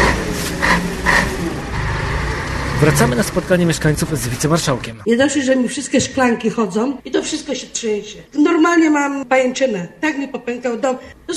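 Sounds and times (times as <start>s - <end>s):
constant car traffic roar in a narrow street: 0.0s - 5.1s
speech: 2.8s - 11.3s.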